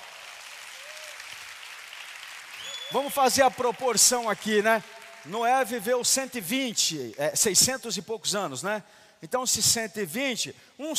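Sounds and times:
audience applause: 0.0s - 5.6s
speech: 2.9s - 10.9s.

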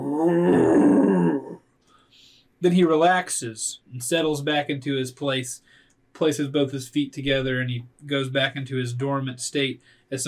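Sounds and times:
voice imitating a low roar: 0.0s - 1.6s
speech: 0.2s - 0.6s, 2.6s - 10.2s.

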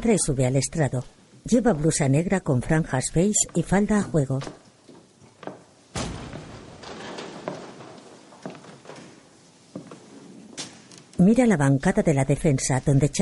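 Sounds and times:
speech: 0.0s - 4.6s, 11.2s - 13.1s
steady rustle: 0.5s - 13.1s
side door opening with clunks and thuds: 5.3s - 9.4s.

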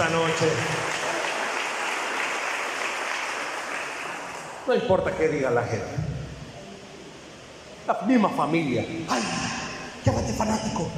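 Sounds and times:
audience applause: 0.0s - 4.6s
speech: 0.4s - 0.8s, 4.7s - 6.1s, 7.9s - 10.9s.

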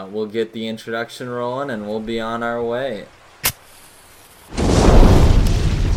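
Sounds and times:
speech: 0.0s - 3.2s
fire being started exploding into a roaring whoosh: 4.4s - 5.9s.

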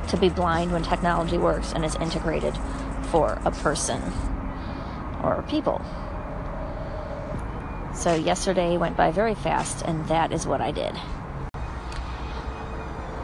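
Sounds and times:
person speaking outdoors: 0.0s - 4.2s, 5.0s - 6.0s, 7.9s - 11.3s
distant road traffic rumbling: 0.0s - 13.2s
speech: 0.1s - 4.3s, 5.2s - 6.0s, 8.0s - 11.2s.

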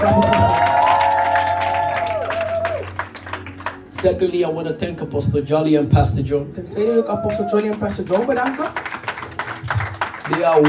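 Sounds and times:
crowd clapping: 0.0s - 4.3s, 7.1s - 10.6s
speech: 4.0s - 8.9s, 10.3s - 10.6s.

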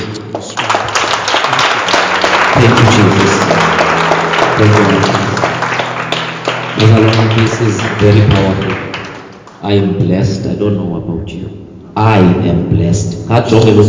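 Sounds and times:
audience clapping hands: 0.0s - 9.9s
speech: 2.6s - 3.4s, 4.6s - 5.2s, 6.8s - 8.8s, 9.6s - 13.8s.

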